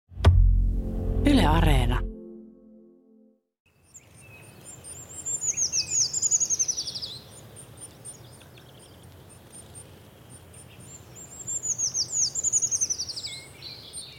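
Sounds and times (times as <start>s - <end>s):
treecreeper song: 0.2s - 3.4s
speech: 1.5s - 2.1s.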